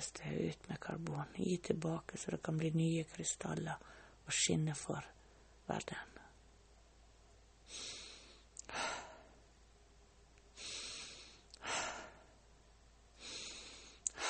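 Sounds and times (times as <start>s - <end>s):
speech: 0.0s - 6.2s
deliberate breathing in a guided breathing exercise: 3.8s - 4.2s, 7.6s - 9.4s, 10.5s - 12.4s, 13.1s - 14.2s.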